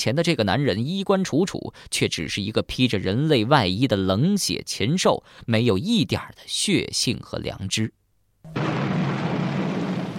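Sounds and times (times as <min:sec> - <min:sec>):
speech: 0:00.0 - 0:08.8
thunder rumbling: 0:08.5 - 0:10.1.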